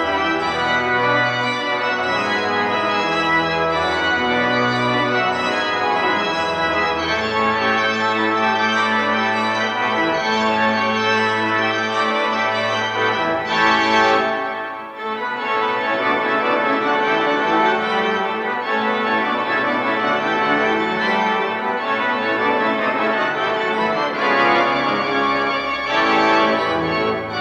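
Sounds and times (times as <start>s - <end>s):
French organ music: 0.0s - 27.3s.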